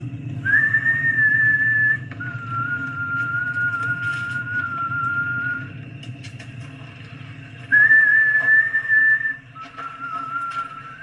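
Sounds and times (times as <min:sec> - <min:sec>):
whistle: 0:00.4 - 0:05.8, 0:07.6 - 0:11.0.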